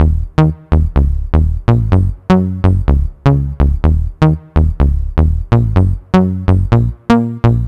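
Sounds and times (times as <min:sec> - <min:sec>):
house bass loop: 0:00.0 - 0:07.6.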